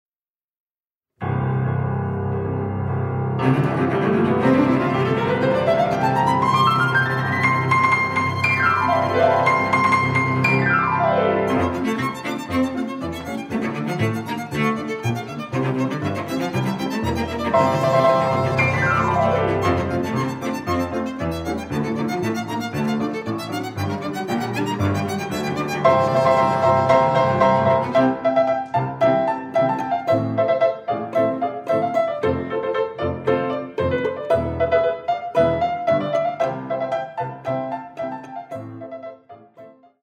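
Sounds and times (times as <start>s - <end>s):
piano trio suite finale for variety orchestra: 1.2s - 40.0s.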